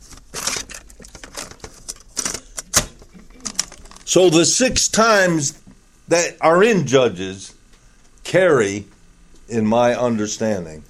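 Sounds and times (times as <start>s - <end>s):
cassette tape being turned over: 0.0s - 4.1s
speech: 4.1s - 7.6s, 8.3s - 8.9s, 9.5s - 10.8s.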